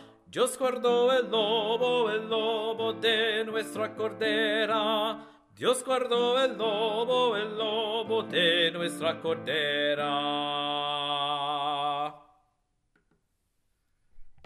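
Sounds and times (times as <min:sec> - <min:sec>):
tenor singing: 0:00.0 - 0:12.2.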